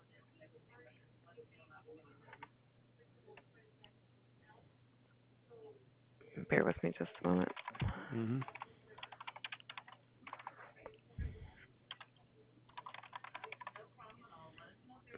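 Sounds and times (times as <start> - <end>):
speech: 1.4 - 3.7, 5.5 - 8.6
computer keyboard typing information into a form: 2.3 - 2.5, 7.0 - 10.8, 11.9 - 13.9.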